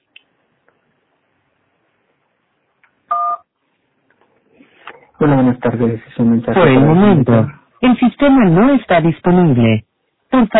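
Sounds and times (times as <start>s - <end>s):
telephone keypad tone: 3.1s - 3.4s
speech: 5.2s - 10.5s.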